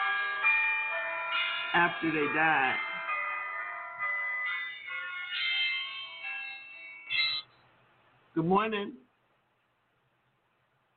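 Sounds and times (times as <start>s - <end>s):
electronic alarm chiming in a melodic pattern: 0.0s - 7.6s
speech: 1.7s - 2.9s, 8.4s - 9.0s.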